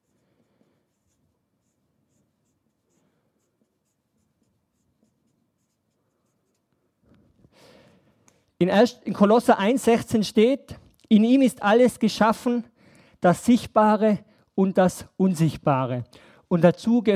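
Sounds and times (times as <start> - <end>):
pen writing a word by hand: 0.0 - 7.5
speech: 8.6 - 17.1.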